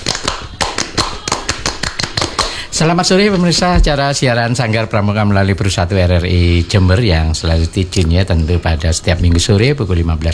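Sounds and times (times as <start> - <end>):
group performing a scout clap: 0.0 - 2.9
speech: 2.8 - 10.3.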